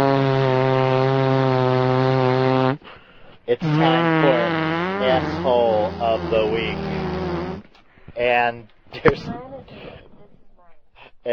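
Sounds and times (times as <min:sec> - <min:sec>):
person blowing a mouth fart: 0:00.0 - 0:07.8
speech: 0:03.5 - 0:07.0, 0:08.2 - 0:09.5.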